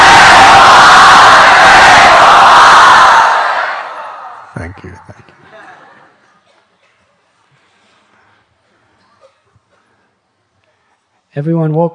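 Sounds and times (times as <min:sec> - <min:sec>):
audience imitating jackal howls: 0:00.0 - 0:05.2
speech: 0:11.4 - 0:11.9.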